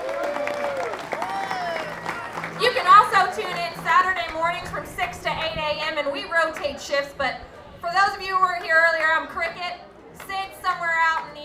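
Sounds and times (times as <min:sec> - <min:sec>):
cheering: 0:00.0 - 0:04.8
crowd applause for a bluegrass radio host at a live show: 0:00.0 - 0:11.4
speech: 0:05.6 - 0:09.8.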